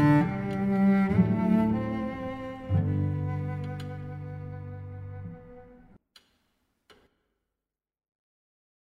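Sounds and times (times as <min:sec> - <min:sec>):
cello duet: 0:00.0 - 0:06.0.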